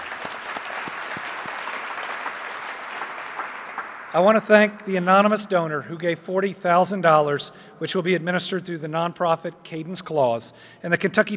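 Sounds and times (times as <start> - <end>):
audience applause: 0.0 - 4.3
speech: 4.1 - 11.3.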